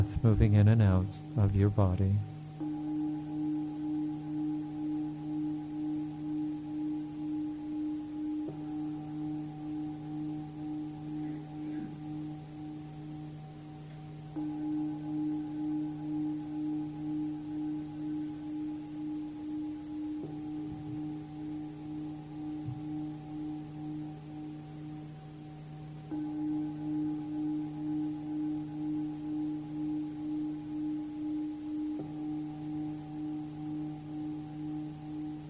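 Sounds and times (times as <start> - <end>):
meditation chime ringing: 0.0 - 35.4
speech: 0.2 - 2.3.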